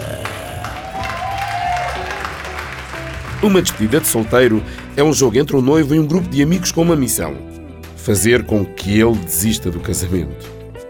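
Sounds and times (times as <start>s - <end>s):
audience applause: 0.0s - 5.2s
faint cheers and whoops: 0.2s - 3.5s
speech: 3.4s - 10.6s.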